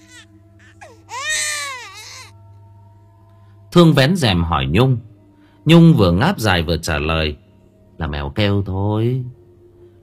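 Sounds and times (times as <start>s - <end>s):
faint distant baby crying at night: 0.0s - 2.4s
speech: 3.7s - 7.4s, 8.0s - 9.4s.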